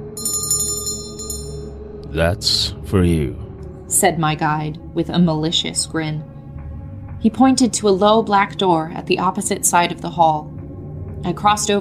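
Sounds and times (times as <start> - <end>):
bell ringing sharply: 0.1 - 1.8
speech: 2.1 - 6.3, 7.2 - 10.5, 11.2 - 11.8.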